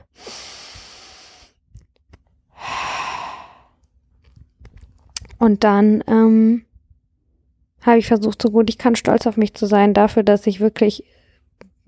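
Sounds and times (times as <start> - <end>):
deep breath in and out: 0.0 - 1.6, 2.5 - 3.8
speech: 5.4 - 6.7, 7.8 - 11.2.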